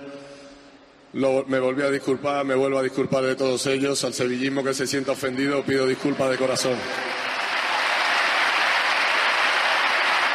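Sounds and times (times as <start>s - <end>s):
speech: 1.1s - 7.3s
applause: 5.4s - 10.3s.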